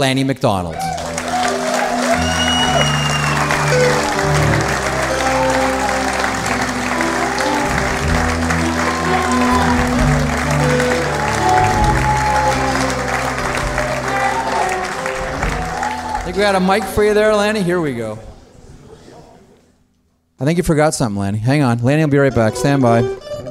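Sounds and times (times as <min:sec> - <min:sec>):
speech: 0:00.0 - 0:01.0, 0:16.3 - 0:18.3, 0:20.4 - 0:23.2
audience applauding a warm welcome for a former Calgary Flames hockey player: 0:00.8 - 0:17.9.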